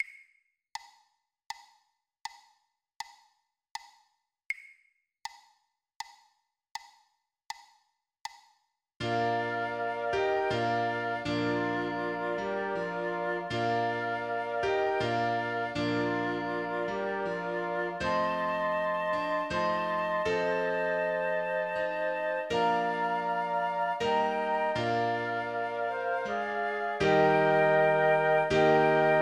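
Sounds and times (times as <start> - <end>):
flute: 9.0 - 29.2
piano: 9.0 - 29.2.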